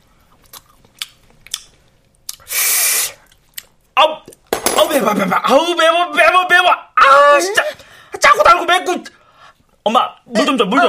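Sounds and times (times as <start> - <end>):
chewing braised short ribs: 0.2 - 2.5, 3.2 - 3.8
speech: 5.0 - 9.2, 9.9 - 10.8.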